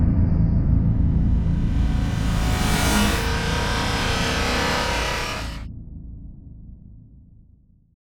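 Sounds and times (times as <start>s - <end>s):
electronic digital reverse whoosh with feedback: 0.8s - 5.6s.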